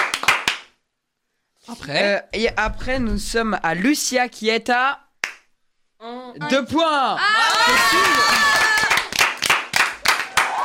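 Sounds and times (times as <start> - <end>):
clapping applause: 0.0 - 0.8, 7.4 - 10.6
speech: 1.7 - 5.0, 6.0 - 8.7.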